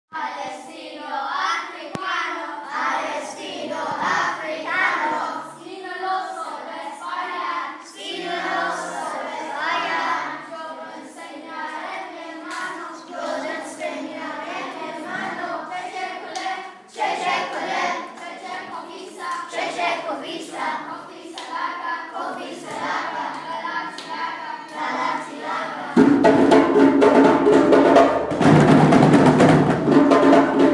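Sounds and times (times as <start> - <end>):
year 4 children drumming performance: 2.8 - 5.6, 7.2 - 30.7.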